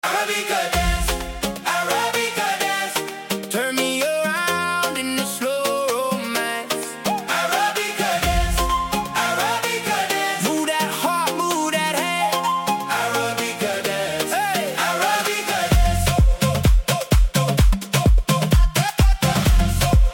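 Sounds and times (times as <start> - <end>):
dance music: 0.0 - 20.1.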